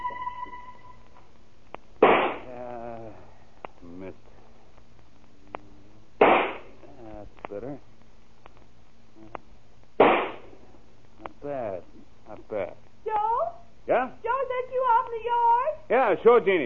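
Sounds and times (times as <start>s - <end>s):
rifle shots: 2.0s - 2.5s, 6.2s - 6.7s, 10.0s - 10.5s
people talking: 2.5s - 3.2s, 3.8s - 4.2s, 6.9s - 7.8s, 11.2s - 16.6s.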